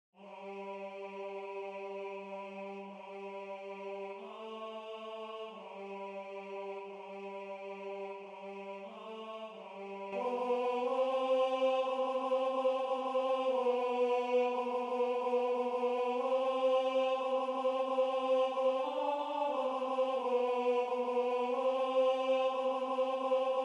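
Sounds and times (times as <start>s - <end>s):
tenor singing: 0.2s - 23.6s.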